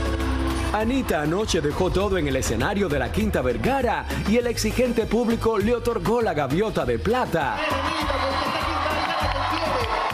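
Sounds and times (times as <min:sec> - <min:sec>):
large festival crowd cheering and applauding: 0:00.0 - 0:03.8, 0:07.3 - 0:10.1
speech: 0:00.7 - 0:08.5.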